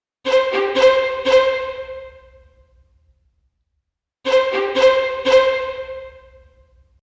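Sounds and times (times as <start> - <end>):
lead melody: 0.3 - 2.4, 4.3 - 6.5.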